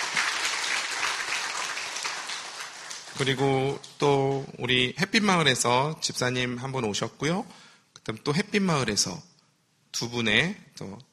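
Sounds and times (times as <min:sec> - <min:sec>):
audience applause: 0:00.0 - 0:03.9
speech: 0:03.2 - 0:09.3, 0:10.0 - 0:11.1.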